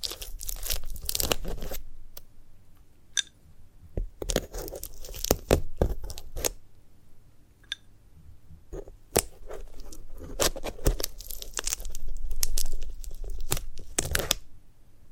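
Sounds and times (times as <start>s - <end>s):
dry crunching tearing and crinkling of a sunflower head: 0.0s - 1.8s, 4.2s - 6.5s, 9.1s - 14.4s.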